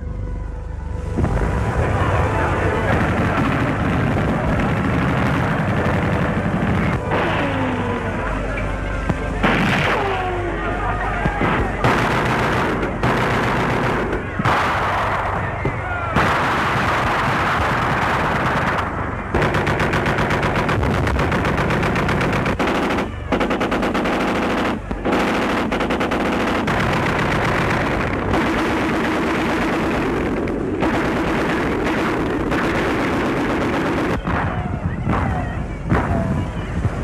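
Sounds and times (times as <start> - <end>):
continuous rumbling din: 0.0 - 37.0
German gunfire near the Paris town hall, the Hôtel de Ville: 2.8 - 8.2, 9.1 - 10.6, 11.2 - 36.7
German machine-gun bursts near the Hôtel de Ville in Paris: 11.4 - 15.0, 19.4 - 34.2.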